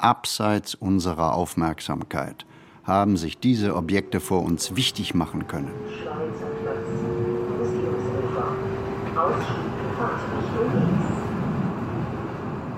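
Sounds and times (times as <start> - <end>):
speech: 0.0 - 6.7, 9.2 - 10.9
Frankfurt U-Bahn subway train in motion: 1.0 - 12.7
low humming tone: 2.9 - 11.4
faint murmuring voices: 5.7 - 11.4.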